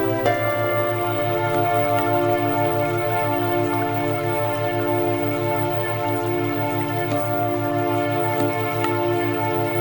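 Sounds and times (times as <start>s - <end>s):
theta wave music: 0.1s - 9.8s.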